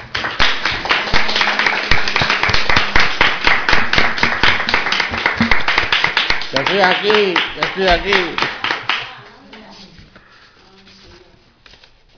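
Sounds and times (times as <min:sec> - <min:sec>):
audience applause: 0:00.0 - 0:09.0
speech: 0:06.5 - 0:08.5.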